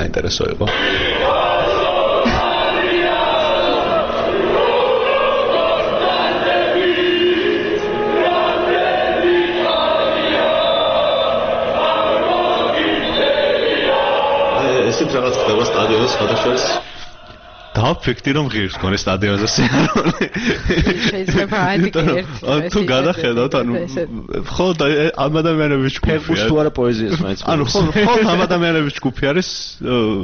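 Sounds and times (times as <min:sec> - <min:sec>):
speech: 0:00.2 - 0:01.5, 0:15.0 - 0:16.9, 0:17.8 - 0:30.2
laughter: 0:00.7 - 0:07.6, 0:19.4 - 0:23.7, 0:26.2 - 0:28.6
football fans singing in the stadium stands: 0:00.7 - 0:18.5.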